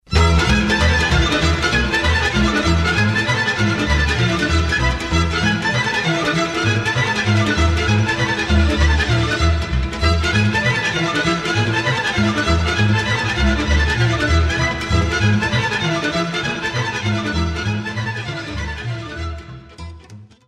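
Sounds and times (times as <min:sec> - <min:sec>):
Romanian sirba folk dance tune: 0:00.0 - 0:20.0.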